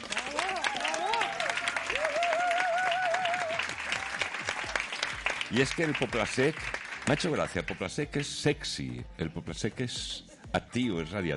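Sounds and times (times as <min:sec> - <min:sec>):
audience cheers and whoops: 0:00.0 - 0:04.8
audience applause: 0:00.0 - 0:07.8
speech: 0:05.5 - 0:11.3.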